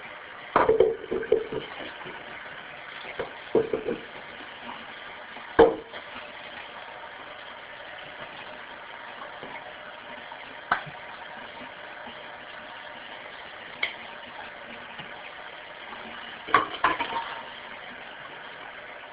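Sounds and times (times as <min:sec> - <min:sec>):
dishes clattering: 0:00.6 - 0:02.0, 0:03.2 - 0:04.2, 0:16.5 - 0:17.4.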